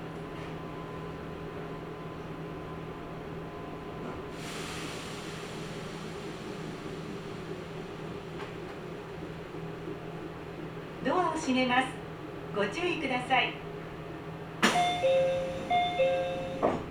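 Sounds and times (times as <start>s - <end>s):
Nagoya Railroad Mikawa Line train hum: 0.0s - 16.9s
hiss: 4.4s - 8.0s
speech: 11.0s - 13.6s
chime-like tones: 14.8s - 16.6s.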